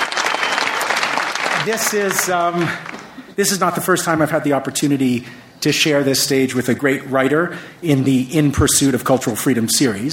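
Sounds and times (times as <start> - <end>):
audience applause: 0.0 - 3.2
speech: 1.6 - 10.1.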